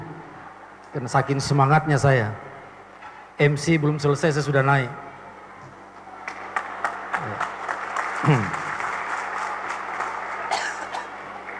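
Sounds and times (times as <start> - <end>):
speech: 0.9 - 2.5, 3.4 - 5.1, 8.2 - 8.6
audience applause: 6.1 - 11.5.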